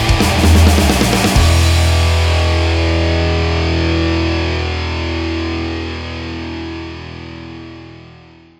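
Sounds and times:
PVP background music: 0:00.0 - 0:04.8.

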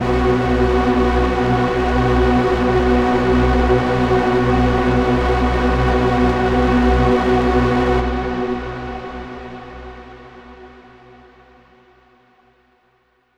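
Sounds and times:
overlay drone: 0:00.0 - 0:08.4.

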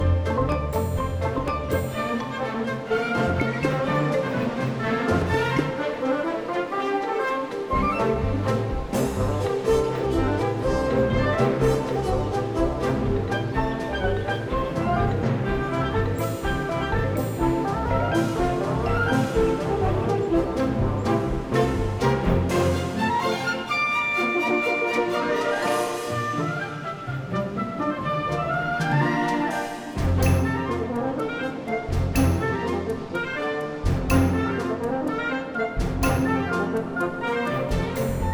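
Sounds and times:
beach music: 0:00.0 - 0:38.3.

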